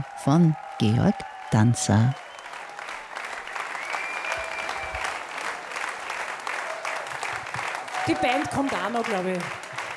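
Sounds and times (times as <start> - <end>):
audience applause after a concert: 0.0 - 9.9
speech: 0.2 - 2.2, 8.0 - 9.7.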